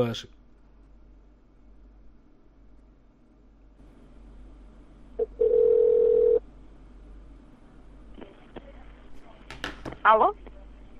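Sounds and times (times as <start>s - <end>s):
speech: 0.0s - 0.4s, 10.1s - 10.4s
telephone line tone while dialing a call to a debt collection agency: 5.2s - 6.4s.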